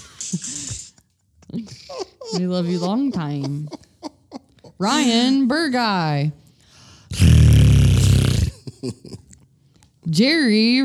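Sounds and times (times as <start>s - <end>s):
short vocal bursts: 0.0s - 1.0s, 7.1s - 8.6s
laughter: 0.0s - 5.5s, 8.4s - 9.4s
speech: 1.5s - 3.8s, 4.8s - 6.4s, 8.8s - 9.2s, 10.1s - 10.8s
person imitating a growl: 7.1s - 8.6s.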